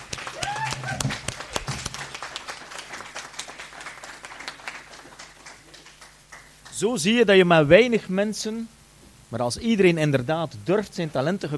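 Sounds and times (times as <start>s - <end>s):
church audience applause: 0.0s - 6.5s
speech: 6.8s - 11.5s.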